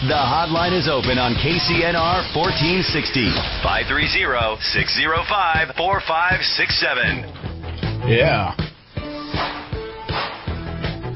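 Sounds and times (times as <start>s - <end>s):
speech: 0.0s - 7.4s, 8.1s - 8.6s
whip cracks: 9.4s - 10.5s.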